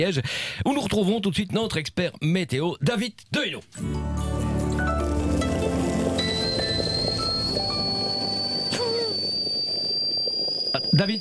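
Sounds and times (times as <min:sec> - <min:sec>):
speech: 0:00.0 - 0:04.4, 0:11.0 - 0:11.1
electric kettle boiling water: 0:04.3 - 0:11.1.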